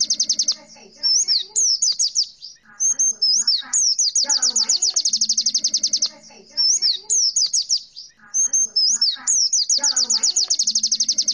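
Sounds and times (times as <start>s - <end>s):
white-eye chirping and warbling: 0.0s - 11.3s.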